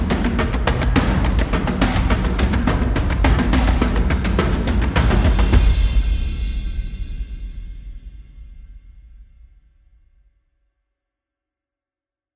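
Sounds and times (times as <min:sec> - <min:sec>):
tribal music: 0:00.0 - 0:08.7.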